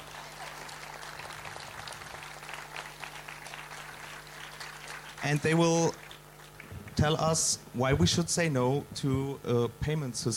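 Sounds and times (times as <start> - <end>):
audience applause: 0.0 - 7.0
faint low hum: 0.0 - 10.3
speech: 5.2 - 6.0, 7.0 - 10.3.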